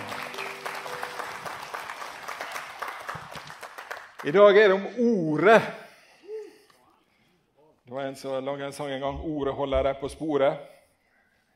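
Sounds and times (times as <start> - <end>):
audience applause: 0.0 - 4.6
speech: 4.2 - 5.8, 8.0 - 10.8.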